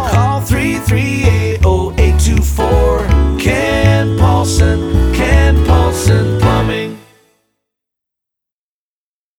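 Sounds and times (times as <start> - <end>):
sung plumbing jingle: 0.1 - 7.3.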